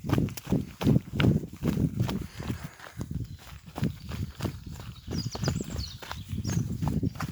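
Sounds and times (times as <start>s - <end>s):
running footsteps on forest ground: 0.0s - 7.2s.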